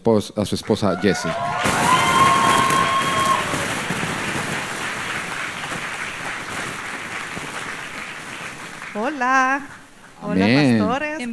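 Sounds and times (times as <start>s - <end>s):
speech: 0.0s - 1.9s, 9.2s - 11.3s
loud steady applause from a large audience: 0.6s - 10.2s
audience whooping and cheering: 0.8s - 9.0s.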